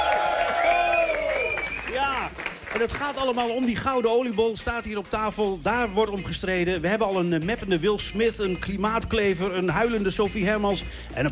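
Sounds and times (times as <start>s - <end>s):
people whooping and shouting: 0.0s - 2.3s
audience clapping in a hall in Hilversum at a radio quiz: 0.0s - 5.4s
speech: 2.8s - 11.3s.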